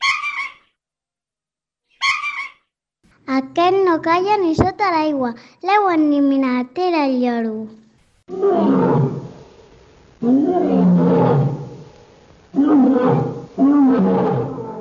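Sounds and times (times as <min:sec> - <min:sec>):
speech: 0:03.3 - 0:09.1, 0:10.2 - 0:11.5
lion roaring: 0:08.3 - 0:09.4, 0:10.2 - 0:11.9, 0:12.5 - 0:14.8.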